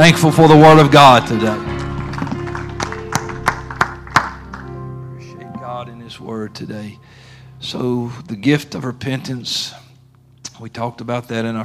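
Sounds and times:
speech: 0.0s - 1.7s, 6.3s - 9.8s, 10.6s - 11.6s
audience clapping hands in praise: 0.1s - 5.0s.

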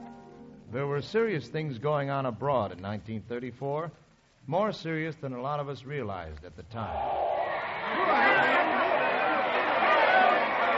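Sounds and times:
speech: 0.7s - 7.2s, 7.9s - 8.8s
huge crowd at a rally roaring: 6.8s - 10.7s.

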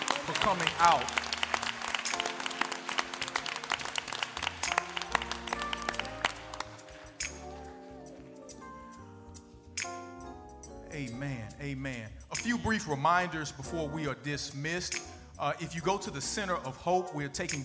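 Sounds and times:
audience applause: 0.0s - 7.2s
speech: 0.4s - 1.3s, 11.2s - 17.6s.

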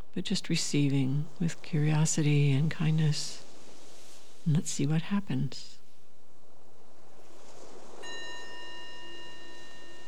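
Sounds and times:
soft rushing hiss: 0.0s - 10.0s
speech: 0.2s - 3.4s, 4.4s - 5.8s
meditation bell ringing: 8.0s - 10.0s.

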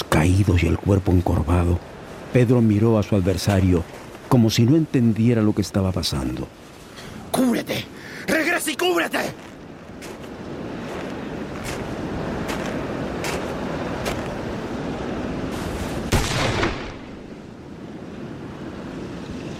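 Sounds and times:
surf-like windy rush: 0.0s - 19.5s
speech: 0.2s - 6.7s, 7.4s - 7.9s
gunshot in a duel: 16.1s - 17.2s.

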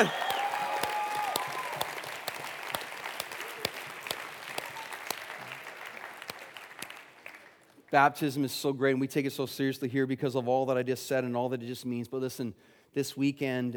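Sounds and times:
speech: 0.0s - 0.2s, 7.9s - 13.7s
audience applause: 0.0s - 7.7s.

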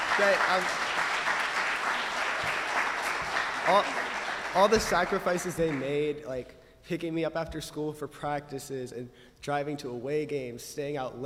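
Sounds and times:
applause: 0.0s - 6.1s
speech: 0.2s - 1.1s, 3.7s - 11.2s.

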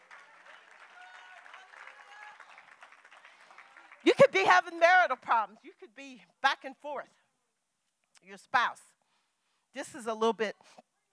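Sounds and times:
audience applause: 0.0s - 4.3s
speech: 4.0s - 7.2s, 8.2s - 8.9s, 9.7s - 10.9s.

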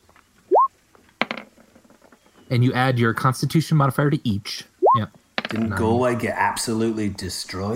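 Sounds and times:
dice clattering across a table: 1.1s - 2.4s, 5.4s - 5.7s
speech: 2.5s - 7.7s.

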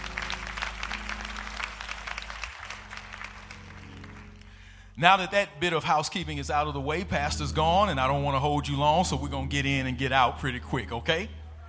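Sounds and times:
audience applause: 0.0s - 4.6s
speech: 5.0s - 11.4s.

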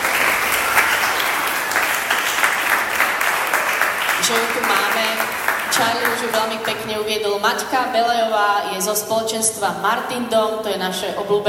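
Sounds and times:
audience applause: 0.0s - 6.8s
speech: 4.3s - 11.4s.

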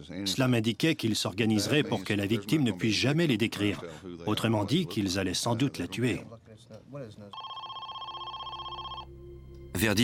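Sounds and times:
speech: 0.0s - 7.4s
telephone ringing with electronic trill: 7.4s - 9.2s.

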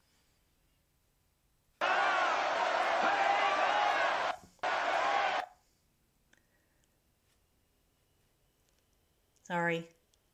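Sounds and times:
crowd screaming and yelling: 1.8s - 5.5s
speech: 9.5s - 10.0s.

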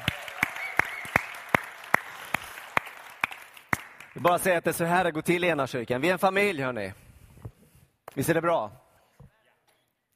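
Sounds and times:
audience applauding and cheering: 0.0s - 4.4s
speech: 4.2s - 7.0s, 8.2s - 8.8s.

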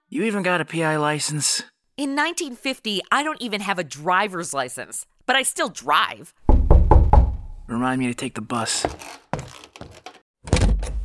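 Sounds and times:
speech: 0.1s - 6.4s, 7.7s - 9.2s
dull hollow knocking and pounding on a door: 6.4s - 7.9s.

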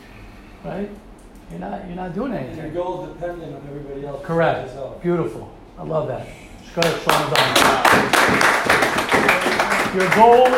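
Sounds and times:
speech: 0.6s - 9.3s, 9.9s - 10.5s
audience clapping: 6.8s - 10.5s.

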